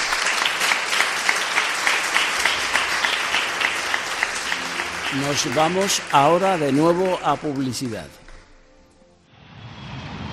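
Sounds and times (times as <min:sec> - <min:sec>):
audience applause: 0:00.0 - 0:08.2
speech: 0:05.1 - 0:08.2.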